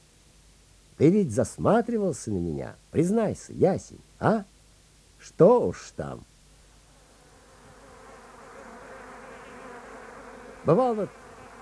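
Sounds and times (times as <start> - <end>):
speech: 1.0 - 4.5, 5.2 - 6.3, 10.6 - 11.6
bees and wasps buzzing: 6.6 - 11.6.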